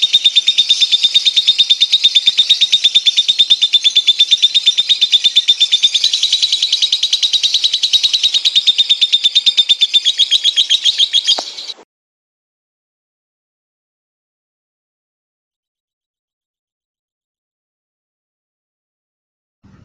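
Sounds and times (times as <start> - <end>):
songbird song in harsh buzzy bursts and rattling trill: 0.0 - 11.8.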